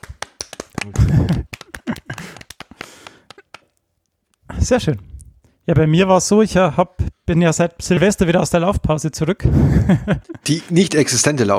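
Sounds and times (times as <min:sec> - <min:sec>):
hand clapping: 0:00.0 - 0:04.4
laughter: 0:00.7 - 0:03.5, 0:09.2 - 0:11.2
speech: 0:04.6 - 0:11.5.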